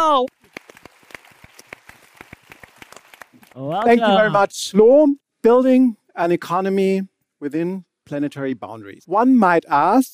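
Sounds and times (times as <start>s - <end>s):
audience applause: 0.2s - 4.2s
speech: 3.6s - 10.1s.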